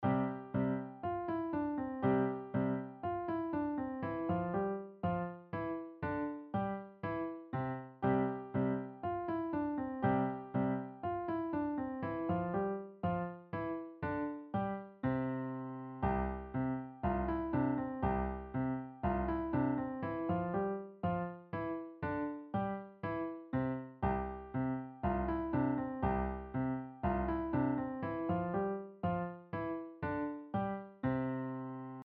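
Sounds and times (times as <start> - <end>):
musette music: 0.0 - 32.0.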